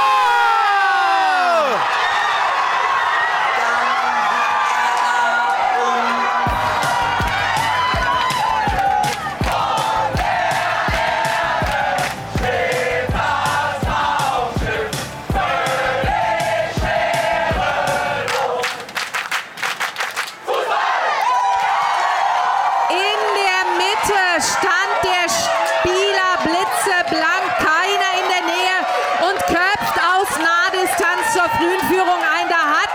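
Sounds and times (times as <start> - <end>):
packed stadium crowd cheering after a goal: 0.0 - 32.9
rhythmic clapping: 6.5 - 20.5.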